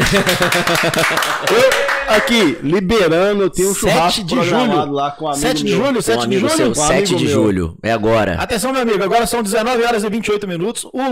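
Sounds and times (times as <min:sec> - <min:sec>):
laughter: 0:00.0 - 0:02.2
rhythmic hand claps from a small group: 0:00.0 - 0:02.6
speech: 0:00.1 - 0:11.0
voices cheering and calling out: 0:00.4 - 0:02.6.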